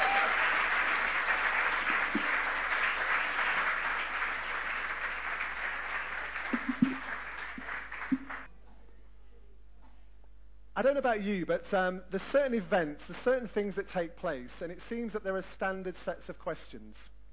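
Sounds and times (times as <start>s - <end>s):
round of applause: 0.0s - 8.5s
speech: 6.6s - 7.1s, 10.8s - 17.2s.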